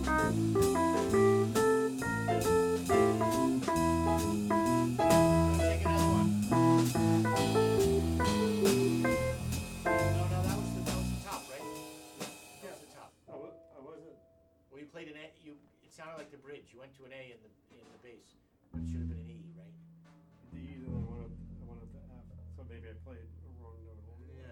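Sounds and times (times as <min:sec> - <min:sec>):
jazz solo: 0:00.0 - 0:12.8, 0:18.7 - 0:24.5.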